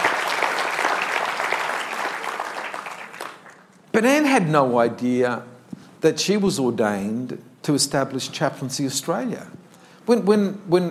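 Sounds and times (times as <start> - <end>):
audience applause: 0.0 - 3.7
speech: 4.0 - 10.9.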